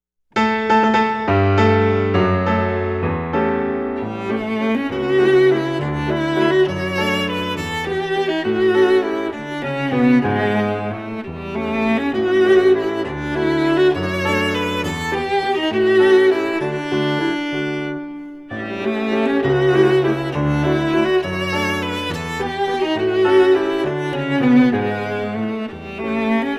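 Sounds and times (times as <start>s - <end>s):
waltz: 0.9s - 26.5s.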